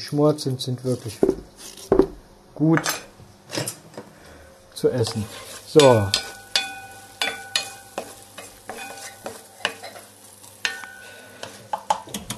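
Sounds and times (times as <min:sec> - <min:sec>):
speech: 0:00.0 - 0:01.5, 0:02.6 - 0:03.0, 0:04.8 - 0:06.2
onions frying in a pan: 0:00.9 - 0:02.2, 0:04.2 - 0:12.1
utensil scraping and knocking against a metal pan: 0:05.0 - 0:11.7.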